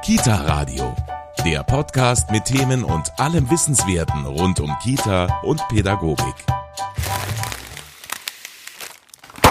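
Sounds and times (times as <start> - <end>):
speech: 0.1 - 6.6
paper sandwich bag bursting: 6.9 - 9.4.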